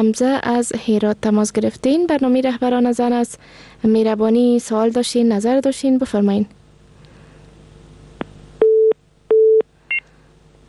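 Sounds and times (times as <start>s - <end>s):
speech: 0.0s - 6.6s
steady low telephone line beeps as a caller's connection drops: 8.6s - 10.0s.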